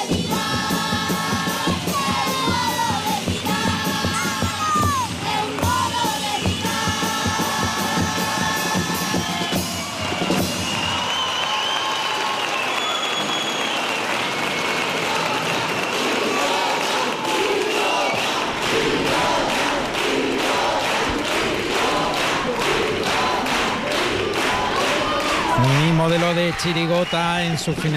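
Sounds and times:
audience applause and cheering: 0.1s - 27.9s
speech: 26.6s - 27.9s.

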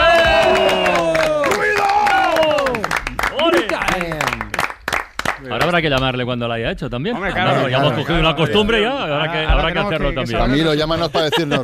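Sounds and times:
cheering and whooping voices: 0.0s - 3.0s
crowd applauding: 0.0s - 6.0s
speech: 5.7s - 11.6s
laughter: 7.1s - 11.6s.

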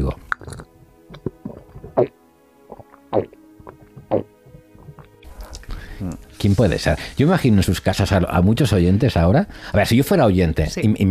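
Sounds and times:
person drinking water from a glass: 0.3s - 5.7s
speech: 6.4s - 11.0s.

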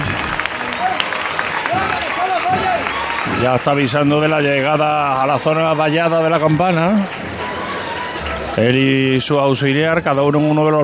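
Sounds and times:
crowd applause: 0.0s - 9.8s
speech: 3.4s - 7.3s, 8.6s - 10.8s.

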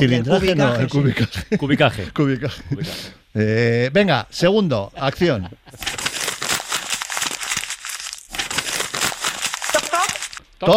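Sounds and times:
speech: 0.0s - 6.0s, 10.6s - 10.7s
sheet of paper crumpling: 5.8s - 10.4s.

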